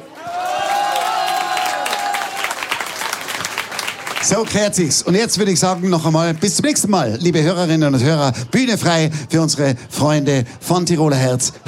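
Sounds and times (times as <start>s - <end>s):
cheers: 0.0s - 4.2s
crowd applause: 0.0s - 6.6s
speech: 4.2s - 11.6s.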